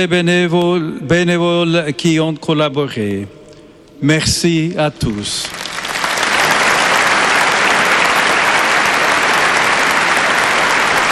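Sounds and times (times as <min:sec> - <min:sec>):
speech: 0:00.0 - 0:03.4, 0:04.0 - 0:05.6
crowd applauding in church: 0:05.4 - 0:11.0.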